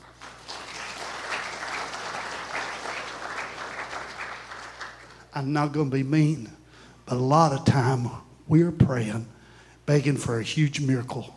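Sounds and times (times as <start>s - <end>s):
audience applause, hand clapping: 0.0s - 5.2s
speech: 5.4s - 11.3s.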